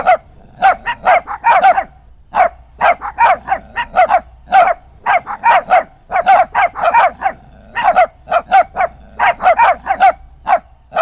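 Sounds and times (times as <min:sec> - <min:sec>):
dog with high yappy barks: 0:00.0 - 0:10.9.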